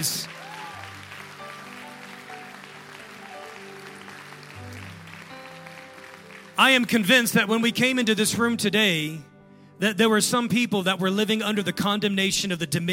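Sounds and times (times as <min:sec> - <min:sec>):
speech: 0:00.0 - 0:00.4, 0:06.6 - 0:12.9
audience clapping hands: 0:00.0 - 0:07.8.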